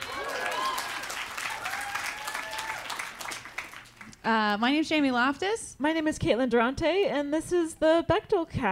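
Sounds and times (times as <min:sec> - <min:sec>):
people cheering: 0:00.0 - 0:03.9
live audience applause at a show in Portland: 0:00.0 - 0:04.1
speech: 0:04.2 - 0:08.7.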